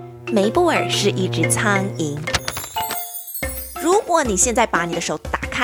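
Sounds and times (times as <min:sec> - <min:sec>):
speech: 0:00.3 - 0:02.4, 0:04.1 - 0:05.6
page-turn signal sound: 0:02.2 - 0:03.1.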